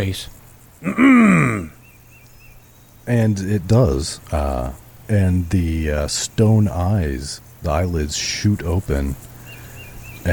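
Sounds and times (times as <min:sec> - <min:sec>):
speech: 0:00.0 - 0:01.8, 0:03.1 - 0:09.3
man clearing throat loudly: 0:00.8 - 0:01.8.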